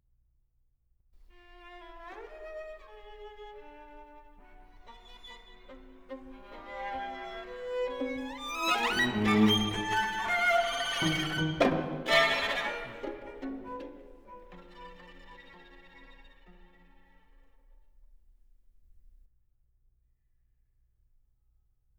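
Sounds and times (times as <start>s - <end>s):
string quartet: 1.3s - 17.5s.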